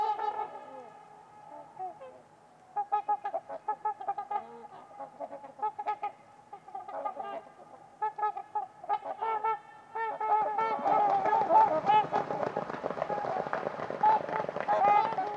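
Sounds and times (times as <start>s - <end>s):
trumpeter swans honking: 0.0s - 15.3s.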